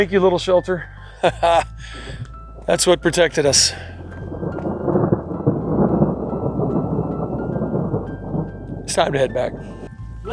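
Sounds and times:
speech: 0:00.0 - 0:03.9, 0:08.9 - 0:10.3
heavy rain: 0:01.3 - 0:10.3
deep continuous rumble of thunder: 0:02.0 - 0:10.3.

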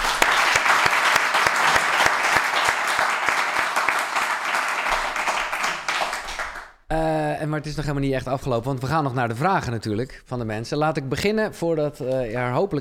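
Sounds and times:
audience applause: 0:00.0 - 0:06.7
speech: 0:07.4 - 0:12.7.

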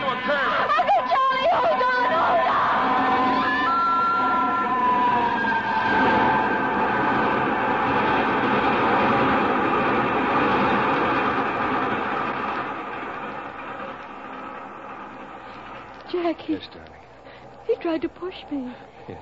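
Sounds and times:
train passing on the tracks: 0:00.0 - 0:19.2
speech: 0:18.0 - 0:19.2.

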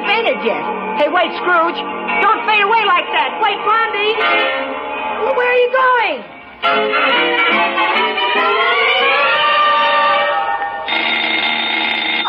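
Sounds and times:
speech: 0:00.4 - 0:08.8
electric doorbell ringing: 0:08.4 - 0:12.2.

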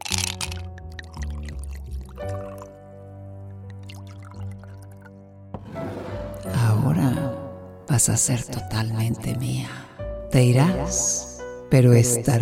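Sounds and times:
cheap brandy being poured over ice into two glasses: 0:00.0 - 0:02.8, 0:03.5 - 0:05.1
speech: 0:02.2 - 0:02.6, 0:08.0 - 0:12.4.

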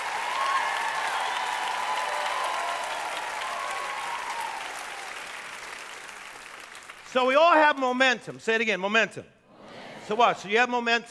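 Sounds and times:
cheers: 0:00.0 - 0:06.5
crowd clapping: 0:00.0 - 0:07.9
speech: 0:07.1 - 0:09.4, 0:10.1 - 0:11.0.

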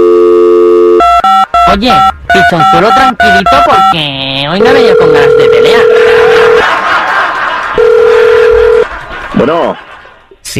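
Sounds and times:
phone ringback tone beeps: 0:00.0 - 0:06.6, 0:07.8 - 0:08.8
speech: 0:01.7 - 0:06.2, 0:09.4 - 0:10.5
laughter: 0:05.8 - 0:10.3.

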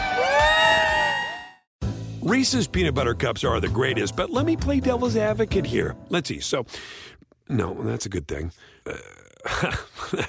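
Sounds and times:
outdoor crowd cheering and whooping: 0:00.0 - 0:01.7
speech: 0:02.3 - 0:10.2.

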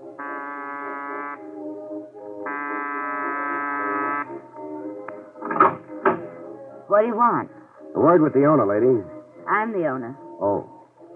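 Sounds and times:
doorbell buzzing at side door: 0:00.2 - 0:01.4, 0:02.5 - 0:04.3
speech: 0:07.0 - 0:10.7.

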